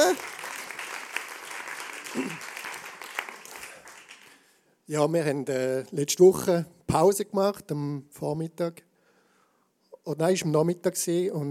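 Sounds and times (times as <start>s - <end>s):
applause: 0.0s - 4.6s
speech: 4.9s - 8.9s, 10.0s - 11.4s.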